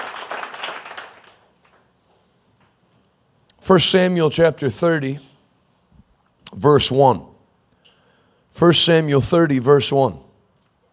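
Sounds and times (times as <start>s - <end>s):
audience applauding: 0.0s - 1.8s
speech: 3.7s - 5.4s, 6.6s - 7.3s, 8.6s - 10.3s.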